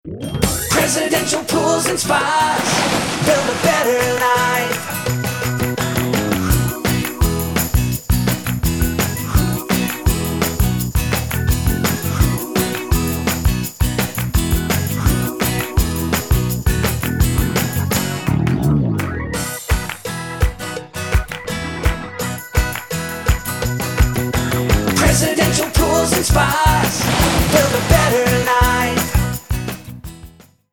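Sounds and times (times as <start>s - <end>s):
pools and spas sales and service jingle: 0.0s - 18.4s, 19.0s - 29.7s.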